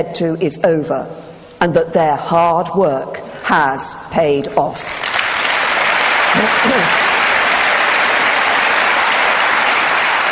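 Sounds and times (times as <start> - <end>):
speech: 0.0 - 5.1, 6.4 - 7.1
audience applause: 5.0 - 10.3.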